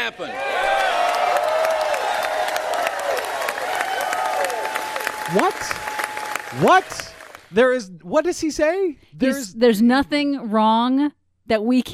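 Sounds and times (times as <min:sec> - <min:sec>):
speech: 0:00.0 - 0:00.7, 0:05.3 - 0:05.9, 0:06.5 - 0:11.9
crowd applauding at political speech: 0:00.4 - 0:07.7.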